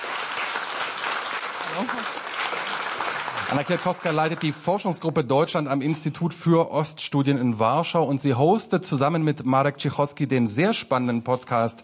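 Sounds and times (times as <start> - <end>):
audience applause: 0.0 - 5.1
speech: 1.7 - 2.3, 3.5 - 11.8.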